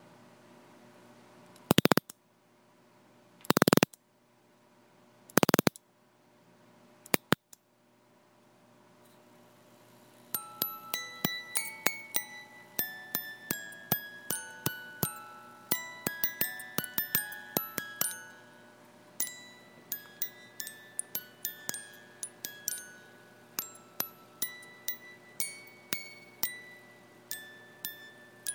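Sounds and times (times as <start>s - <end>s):
music box mechanism: 1.6s - 2.1s, 3.5s - 3.9s, 5.3s - 5.8s, 10.3s - 28.5s.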